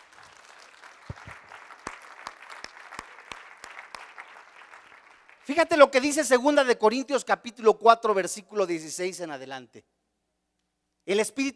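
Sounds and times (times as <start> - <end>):
audience applauding: 0.0 - 5.8
speech: 5.5 - 10.0, 11.1 - 11.5.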